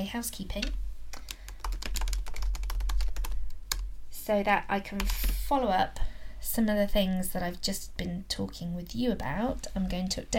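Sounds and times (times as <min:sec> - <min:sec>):
speech: 0:00.0 - 0:00.8, 0:04.3 - 0:10.3
low hum: 0:00.0 - 0:10.3
keyboard typing: 0:00.5 - 0:03.9, 0:05.0 - 0:05.4.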